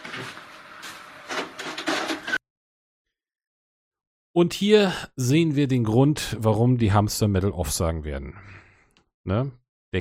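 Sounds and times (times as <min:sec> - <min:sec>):
window being closed: 0:00.0 - 0:02.4
speech: 0:04.4 - 0:08.6, 0:09.2 - 0:09.9.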